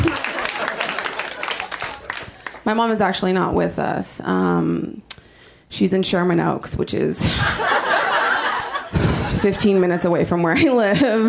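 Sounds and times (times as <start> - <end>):
laughter: 0.0 - 2.5, 7.2 - 11.2
audience applause: 0.0 - 2.7
speech: 2.7 - 5.1, 5.7 - 7.9, 9.4 - 11.2.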